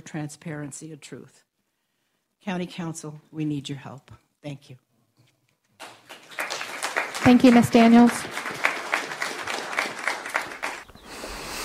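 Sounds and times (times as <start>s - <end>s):
speech: 0.0s - 1.5s, 2.4s - 4.9s, 7.2s - 8.4s
audience applauding at council meeting: 5.8s - 10.9s.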